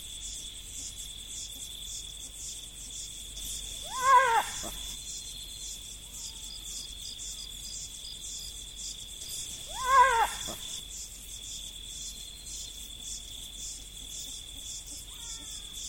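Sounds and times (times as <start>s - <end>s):
insects in the prairies: 0.0s - 15.8s
jackals in the prairies: 3.8s - 4.9s, 9.7s - 10.7s.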